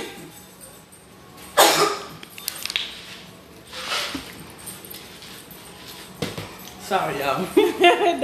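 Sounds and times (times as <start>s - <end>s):
person coughing after choking on water: 1.6s - 2.1s
speech: 6.9s - 8.2s.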